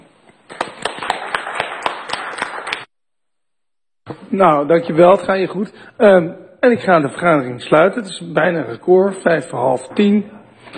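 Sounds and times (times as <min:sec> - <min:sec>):
small group applause: 0:00.4 - 0:02.9
speech: 0:04.3 - 0:10.7.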